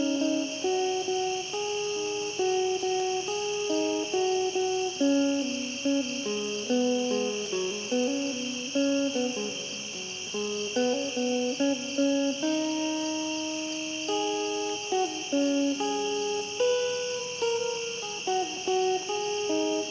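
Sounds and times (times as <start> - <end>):
cricket chirping: 0.0 - 19.8.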